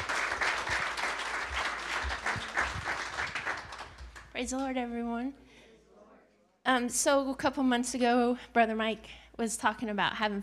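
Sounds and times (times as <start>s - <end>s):
audience applause for a speaker: 0.0s - 4.4s
speech: 4.4s - 5.4s, 6.7s - 10.4s.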